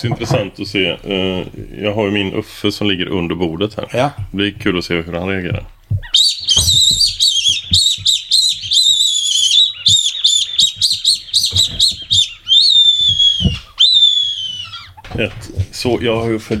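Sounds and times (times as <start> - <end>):
speech: 0.0 - 6.2, 15.2 - 16.5
predator call imitating an injured bird: 6.0 - 15.2.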